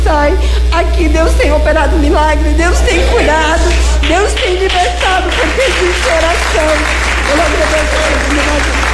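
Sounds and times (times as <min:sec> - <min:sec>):
speech: 0:00.2 - 0:08.9
laughter: 0:01.1 - 0:08.9
audience clapping: 0:03.2 - 0:08.9.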